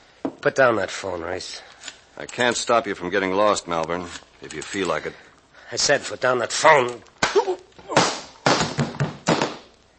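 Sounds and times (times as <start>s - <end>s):
speech: 0.4s - 7.6s
slaps to the face: 7.2s - 9.8s.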